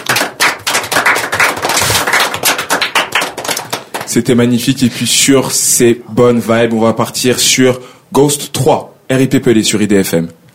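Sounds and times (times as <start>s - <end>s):
applause: 0.0s - 4.4s
speech: 4.1s - 10.5s.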